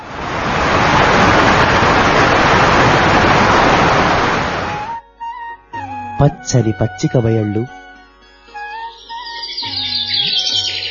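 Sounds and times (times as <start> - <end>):
roaring waterfall: 0.0 - 5.0
speech: 6.2 - 7.8.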